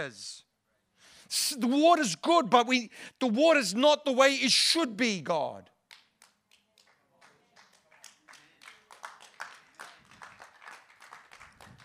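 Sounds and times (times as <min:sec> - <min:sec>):
speech: 0:00.0 - 0:00.4, 0:01.3 - 0:05.7
crowd clapping: 0:05.9 - 0:11.8.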